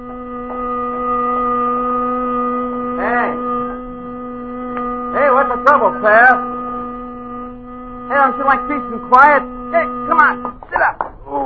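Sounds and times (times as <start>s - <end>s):
warbling swell: 0.0s - 10.5s
car horn blaring: 0.0s - 11.0s
speech: 5.5s - 6.6s, 8.2s - 11.4s.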